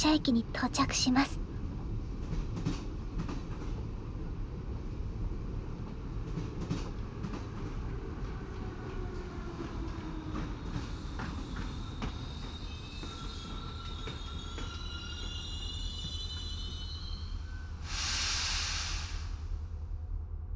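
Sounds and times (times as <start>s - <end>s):
speech: 0.0s - 1.5s
sleeper train rumbling on rails: 0.0s - 20.5s
high squeal: 11.3s - 19.5s.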